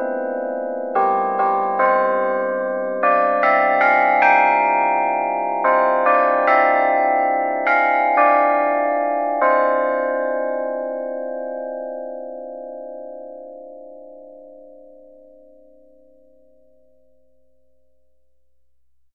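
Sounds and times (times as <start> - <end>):
bells playing an anthem: 0.0 - 11.6.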